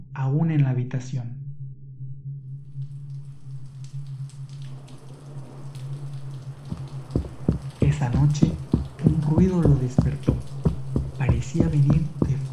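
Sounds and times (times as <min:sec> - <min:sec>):
constant low hum: 0:00.0 - 0:12.5
speech: 0:00.2 - 0:01.4, 0:08.0 - 0:10.5, 0:11.2 - 0:12.5
heavy rain: 0:04.0 - 0:12.5.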